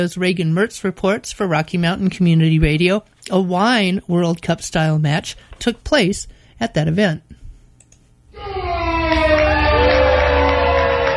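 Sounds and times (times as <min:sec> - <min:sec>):
speech: 0:00.0 - 0:07.4
crowd cheering at wine tasting match: 0:08.4 - 0:11.1.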